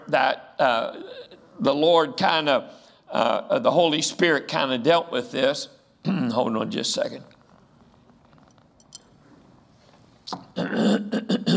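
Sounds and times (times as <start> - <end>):
speech: 0.1 - 7.4
coughing fit after swallowing wrong: 10.4 - 11.5.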